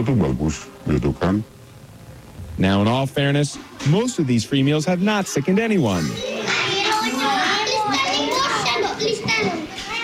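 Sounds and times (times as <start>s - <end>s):
speech: 0.0s - 1.6s, 2.6s - 6.3s
kindergartners chattering while eating lunch: 3.9s - 10.0s.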